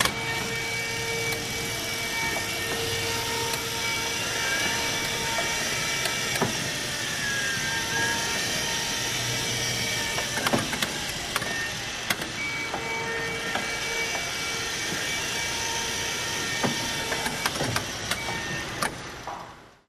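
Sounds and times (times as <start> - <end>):
electric wheelchair starting, maneuvering and stopping: 0.0 - 19.8.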